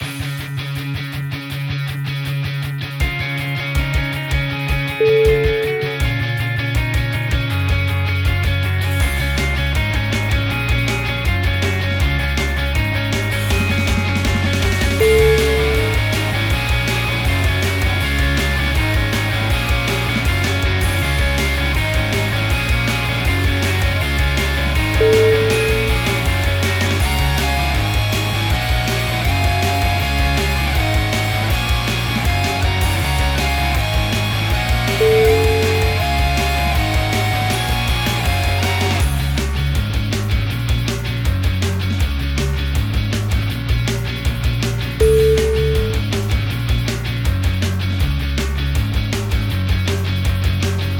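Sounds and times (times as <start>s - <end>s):
rock music: 0.0s - 50.9s.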